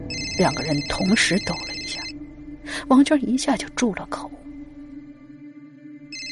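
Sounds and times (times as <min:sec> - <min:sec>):
telephone ringing in the dark: 0:00.0 - 0:02.1, 0:06.1 - 0:06.3
speech: 0:00.4 - 0:02.0, 0:02.9 - 0:04.5.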